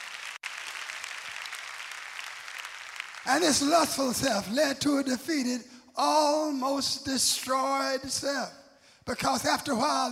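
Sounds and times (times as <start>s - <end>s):
audience clapping: 0.0s - 4.6s
speech: 3.2s - 10.1s.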